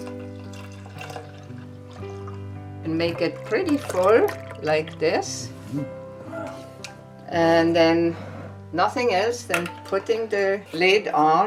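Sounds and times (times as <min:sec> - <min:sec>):
unsweetened soy drink pouring into a container: 0:00.0 - 0:05.4
speech: 0:02.8 - 0:06.0, 0:07.3 - 0:11.4.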